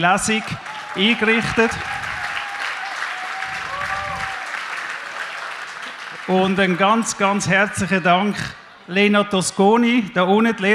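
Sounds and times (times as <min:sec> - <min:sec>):
speech: 0:00.0 - 0:02.0, 0:06.3 - 0:10.7
audience applause: 0:00.0 - 0:08.6.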